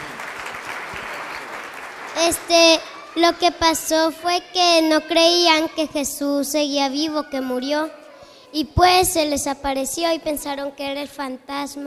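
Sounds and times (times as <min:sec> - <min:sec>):
audience applause: 0:00.0 - 0:03.3
speech: 0:02.2 - 0:11.8.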